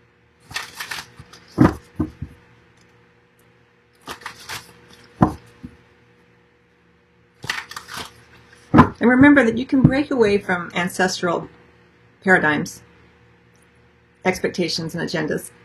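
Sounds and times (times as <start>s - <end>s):
cards drawn from a deck during a card reading: 0.4s - 2.2s, 4.0s - 5.7s, 7.4s - 8.8s
speech: 9.1s - 11.6s, 12.2s - 12.9s, 14.2s - 15.6s.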